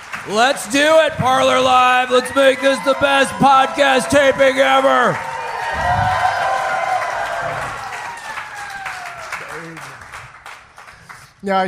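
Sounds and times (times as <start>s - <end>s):
live audience cheering and applauding wildly: 0.0s - 11.6s
speech: 0.2s - 6.1s, 11.4s - 11.6s
people whooping and shouting: 0.8s - 9.8s.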